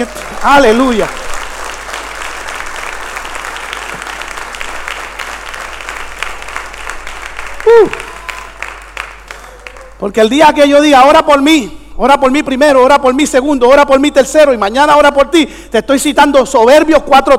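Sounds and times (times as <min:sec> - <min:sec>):
speech: 0:00.0 - 0:01.2, 0:07.8 - 0:08.0, 0:10.0 - 0:17.3
audience applauding: 0:00.0 - 0:10.1.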